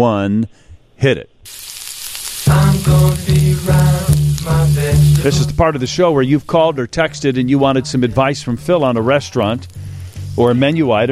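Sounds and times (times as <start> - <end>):
speech: 0.0 - 1.7, 2.5 - 9.8, 10.4 - 11.0
frying sizzle sound effect: 1.5 - 11.0.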